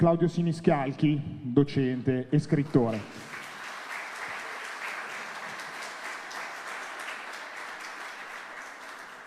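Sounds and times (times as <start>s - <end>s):
speech: 0.0s - 3.3s
audience applause: 2.6s - 9.2s.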